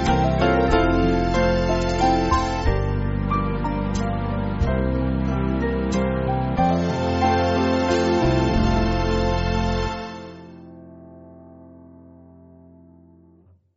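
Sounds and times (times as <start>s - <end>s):
church band backing music: 0.0s - 10.6s.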